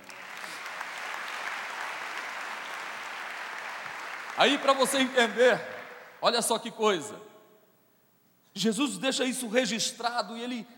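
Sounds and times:
audience applauding: 0.0s - 6.2s
speech: 4.4s - 7.3s, 8.6s - 10.7s.

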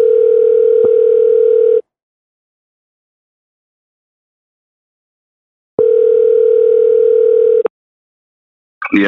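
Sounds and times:
telephone tone bursts from placing a call: 0.0s - 1.8s, 5.8s - 7.7s.

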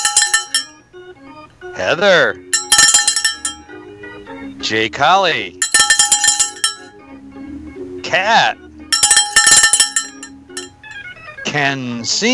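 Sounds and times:
cowbell ringing: 0.0s - 0.8s, 2.5s - 3.8s, 5.6s - 6.9s, 8.9s - 11.0s
speech: 1.1s - 2.5s, 4.6s - 5.6s, 8.1s - 8.6s, 11.4s - 12.3s.

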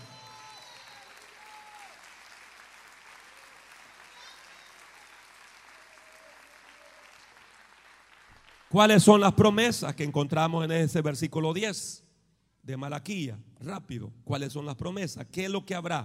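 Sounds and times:
crowd applause: 0.0s - 8.8s
speech: 8.7s - 12.1s, 12.7s - 16.0s.

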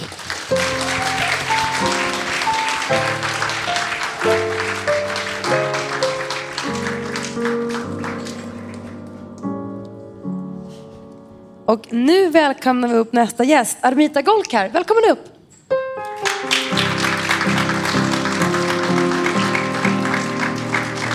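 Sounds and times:
audience applause: 0.0s - 9.2s, 16.2s - 21.1s
speech: 11.7s - 15.3s.

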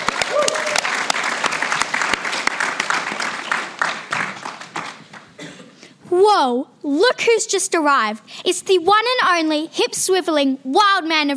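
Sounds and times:
studio audience applause: 0.0s - 5.3s
whoops and cheers: 0.2s - 1.0s
speech: 6.2s - 11.3s.

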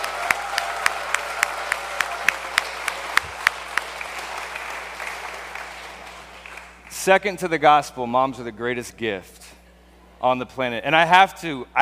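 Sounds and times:
audience applause for mothers at a Mother's Day church gathering: 0.0s - 6.8s
sharp claps in unison: 0.0s - 6.9s
speech: 7.0s - 9.4s, 10.2s - 11.7s.

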